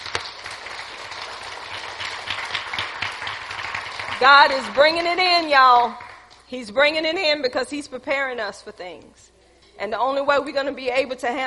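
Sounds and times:
audience applause: 0.0 - 6.2
speech: 4.2 - 11.4.

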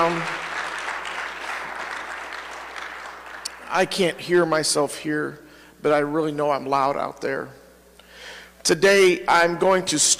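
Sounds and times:
speech: 0.0 - 0.5, 3.7 - 7.6, 8.6 - 10.1
audience applause: 0.0 - 3.7.

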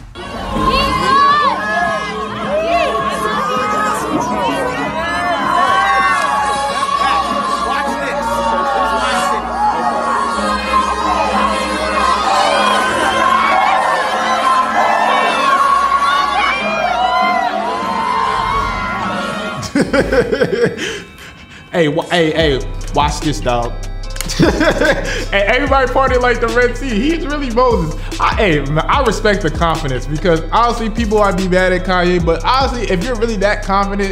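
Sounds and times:
packed bar crowd chatter: 0.0 - 22.0
bar crowd cheering: 0.0 - 34.1
bar crowd laughing: 0.2 - 22.1, 23.0 - 34.1
speech: 21.8 - 34.1.

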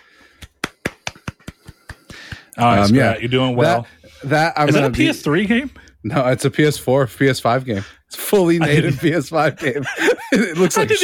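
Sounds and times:
one person clapping: 0.0 - 2.6
speech: 2.6 - 11.0
laughter: 8.4 - 11.0.

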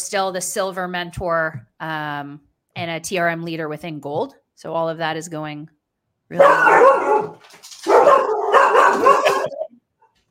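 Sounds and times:
speech: 0.0 - 8.3
pet dogs barking and setting each other off: 6.4 - 9.7.

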